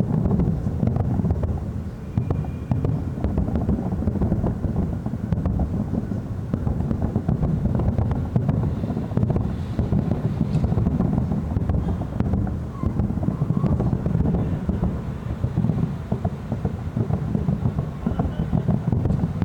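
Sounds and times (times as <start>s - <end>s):
Republic Day fireworks: 0.0s - 19.4s.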